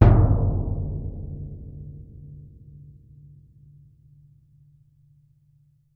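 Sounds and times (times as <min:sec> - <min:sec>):
bass drum percussion: 0:00.0 - 0:03.2.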